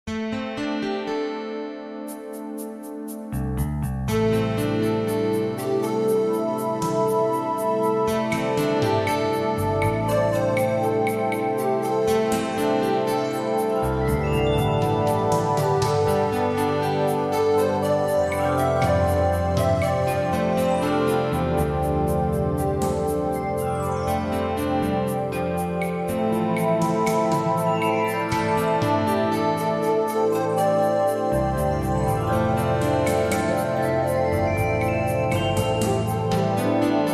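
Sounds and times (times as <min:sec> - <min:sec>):
dreamy music: 0:00.0 - 0:37.1.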